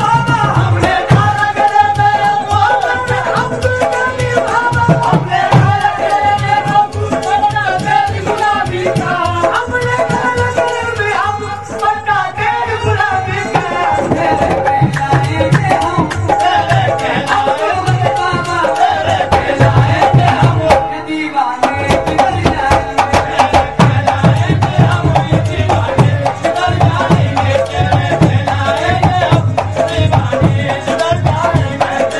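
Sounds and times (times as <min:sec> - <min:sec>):
village sufi music in India: 0:00.0 - 0:32.1.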